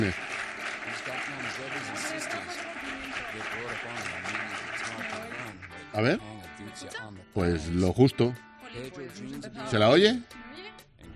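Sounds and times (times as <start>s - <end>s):
applause: 0.0s - 6.1s
speech: 1.6s - 11.1s.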